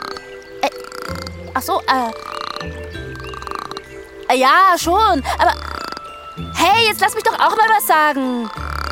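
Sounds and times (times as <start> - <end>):
voice imitating a frog croaking: 0.0 - 3.9, 5.2 - 6.2, 8.3 - 8.9
speech: 0.6 - 3.0, 4.3 - 5.7, 6.6 - 8.6.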